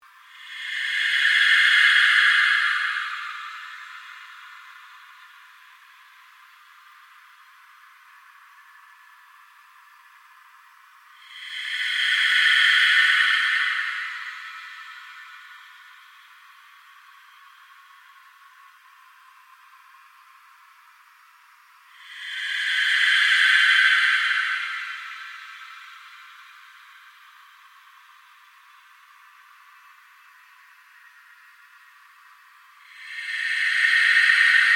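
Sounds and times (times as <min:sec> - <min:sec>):
ambient drone with slow sweep: 0:00.1 - 0:34.7.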